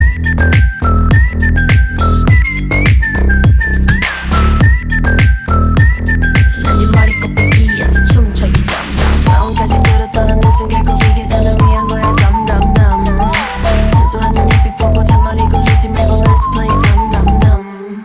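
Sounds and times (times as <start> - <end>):
instrumental music: 0.0 - 17.6
vocals: 6.4 - 18.0.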